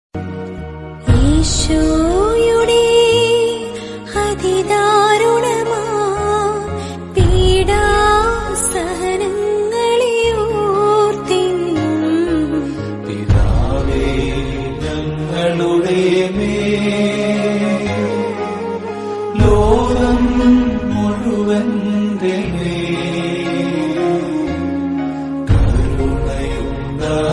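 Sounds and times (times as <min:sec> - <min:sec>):
Malayalam mood background music: 0:00.2 - 0:27.3.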